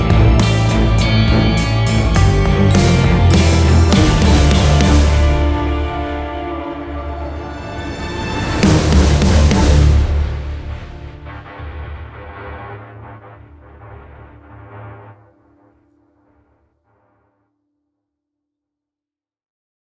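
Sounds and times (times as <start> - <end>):
blues music with reverb: 0.0 - 15.2.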